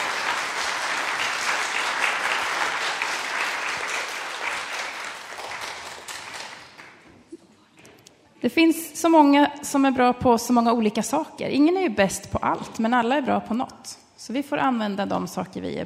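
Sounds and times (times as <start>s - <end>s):
audience applause: 0.0s - 7.1s
speech: 8.4s - 15.8s.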